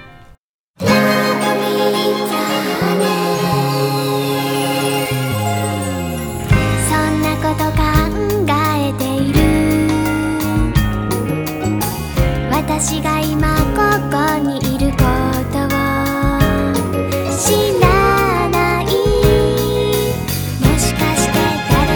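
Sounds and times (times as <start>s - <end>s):
bright jingly instrumental Japanese Christmas song: 0.8s - 21.9s
chiming bell-like tones: 1.6s - 7.0s.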